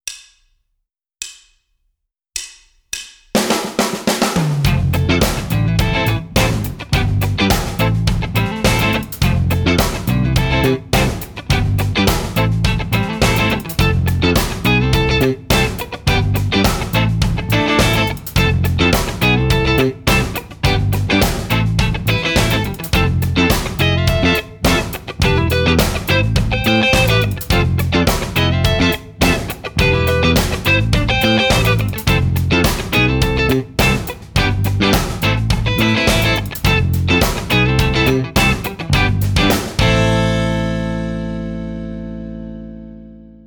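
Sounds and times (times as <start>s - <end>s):
rhythm guitar: 3.4s - 43.4s.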